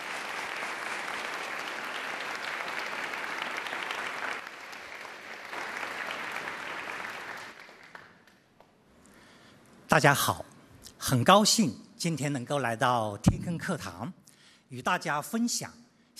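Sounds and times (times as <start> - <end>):
audience applause: 0.0 - 8.3
speech: 9.9 - 16.1.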